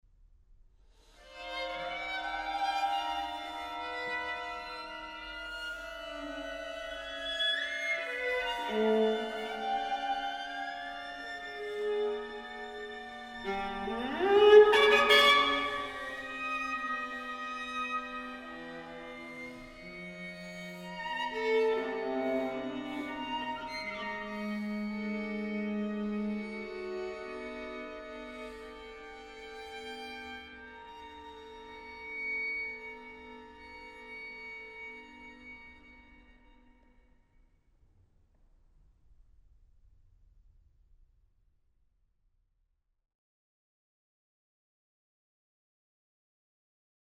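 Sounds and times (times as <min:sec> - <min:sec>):
string quartet playing short pieces: 0:01.8 - 0:35.5.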